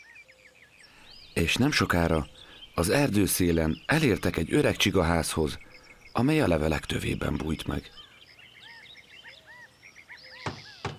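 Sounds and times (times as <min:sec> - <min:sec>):
birds chirping and whistling: 0:00.8 - 0:10.9
speech: 0:01.4 - 0:08.0
knocking on a door: 0:10.4 - 0:10.9.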